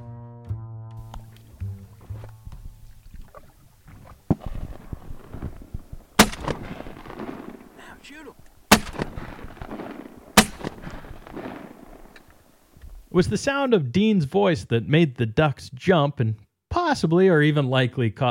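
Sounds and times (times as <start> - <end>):
gunshots while duck hunting: 4.3 - 12.6
speech: 8.1 - 8.5, 13.2 - 18.2.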